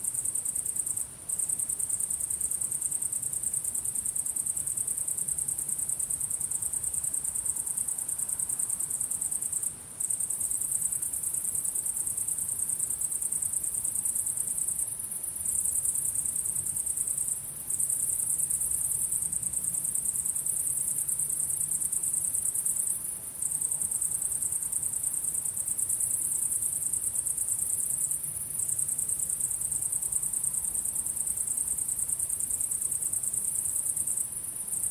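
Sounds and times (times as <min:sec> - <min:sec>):
crickets chirping in high pulses: 0:00.0 - 0:34.8.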